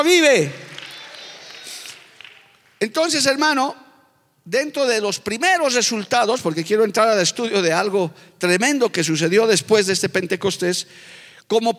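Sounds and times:
speech: 0.0s - 0.6s, 2.8s - 3.8s, 4.4s - 11.7s
audience applause: 0.0s - 2.8s.

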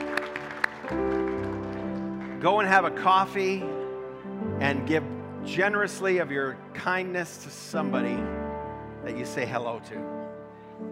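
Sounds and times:
audience clapping: 0.0s - 3.3s
sustained organ-like chords: 0.0s - 10.9s
speech: 2.4s - 3.8s, 4.6s - 8.4s, 9.0s - 10.2s.

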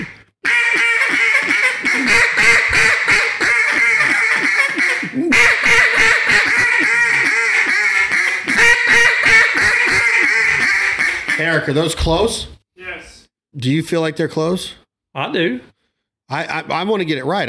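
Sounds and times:
Jargon Game Calls duck call imitating duck quacks: 0.0s - 11.9s
speech: 11.5s - 12.6s, 13.6s - 15.7s, 16.3s - 17.4s.

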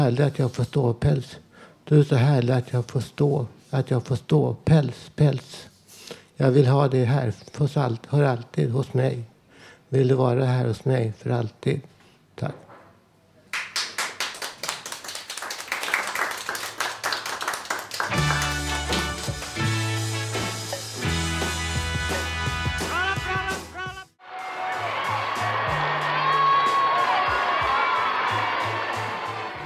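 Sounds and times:
speech: 0.0s - 5.7s, 6.4s - 9.3s, 9.9s - 12.6s
audience clapping and cheering: 13.5s - 29.6s.

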